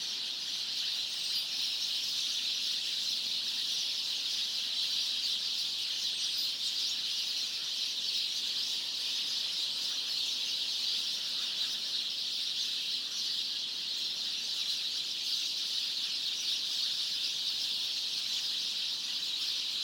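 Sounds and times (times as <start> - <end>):
loud morning bird tweets: 0.0 - 19.8.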